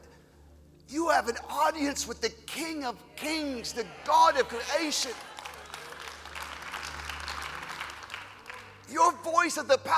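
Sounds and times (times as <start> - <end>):
speech: 1.0 - 5.3, 8.9 - 9.9
audience clapping: 4.2 - 9.0.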